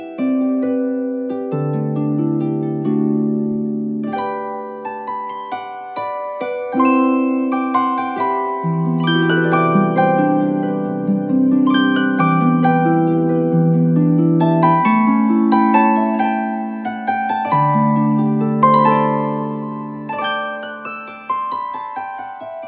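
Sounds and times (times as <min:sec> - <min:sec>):
harp loop: 0:00.0 - 0:22.6.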